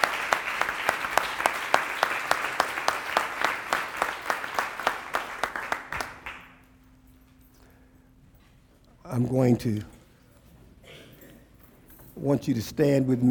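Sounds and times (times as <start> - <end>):
audience hand clapping: 0.0 - 6.7
speech: 9.2 - 10.0, 12.2 - 13.2.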